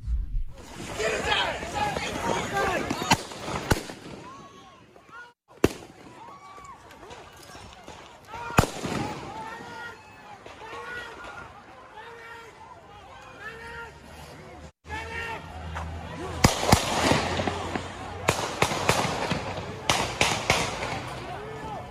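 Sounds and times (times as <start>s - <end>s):
gunshots on a city street: 0.6s - 4.5s, 5.5s - 6.3s, 7.9s - 9.8s, 16.4s - 21.4s
shouting crowd noise and commotion: 0.6s - 21.9s.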